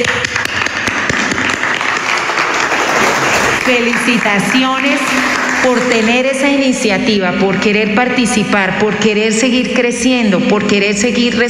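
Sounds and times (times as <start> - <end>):
speech: 0.0 - 0.3, 3.7 - 11.4
audience applause: 0.3 - 6.3.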